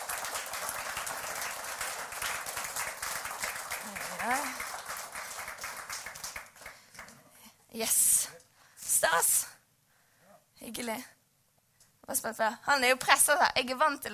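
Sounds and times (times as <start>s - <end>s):
audience applause: 0.0s - 7.2s
speech: 7.8s - 8.1s, 9.0s - 9.4s, 10.7s - 11.2s, 12.1s - 14.1s.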